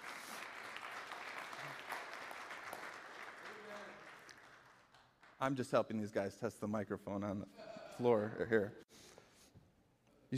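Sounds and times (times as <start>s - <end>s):
audience applause: 0.0s - 5.4s
speech: 5.4s - 8.8s.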